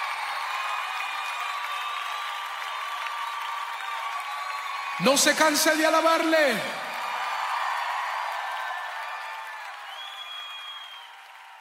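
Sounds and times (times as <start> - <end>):
church congregation applauding during worship: 0.0 - 11.5
speech: 5.0 - 6.8.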